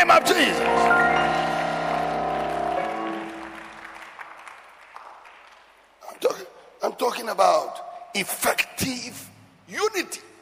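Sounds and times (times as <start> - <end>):
speech: 0.0 - 1.2, 7.0 - 10.3
sustained keyboard chord: 0.0 - 3.7
audience clapping: 0.0 - 6.0.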